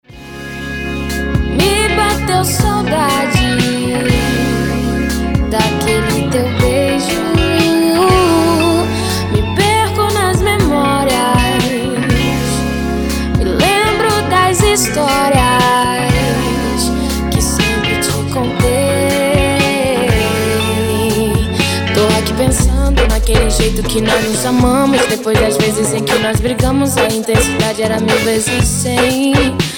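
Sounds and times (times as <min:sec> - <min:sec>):
Latin pop music: 0:00.0 - 0:29.7.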